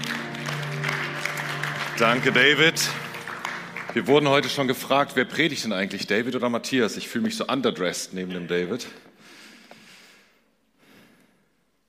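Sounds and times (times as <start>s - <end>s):
audience applause: 0.0s - 5.6s
speech: 2.0s - 3.0s, 3.9s - 9.1s.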